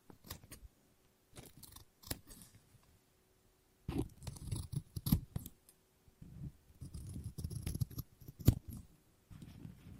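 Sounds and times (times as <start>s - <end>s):
scissors blades snipping: 1.4s - 2.5s, 3.9s - 5.6s, 6.8s - 8.8s.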